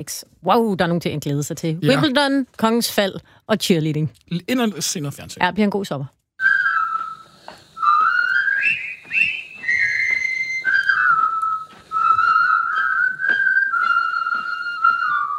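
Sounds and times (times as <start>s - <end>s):
speech: 0.0s - 6.2s
group whistling a jaunty march melody from a film: 6.4s - 15.3s.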